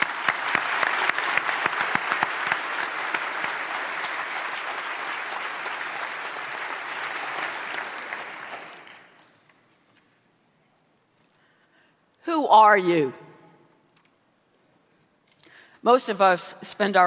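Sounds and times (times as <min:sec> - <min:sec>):
crowd applause: 0:00.0 - 0:09.4
speech: 0:12.5 - 0:13.2, 0:15.8 - 0:17.0.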